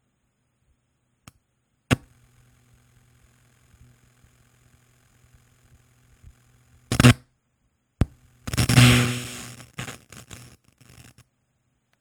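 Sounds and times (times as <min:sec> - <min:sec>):
USB noise: 0:06.9 - 0:07.2, 0:08.5 - 0:11.1.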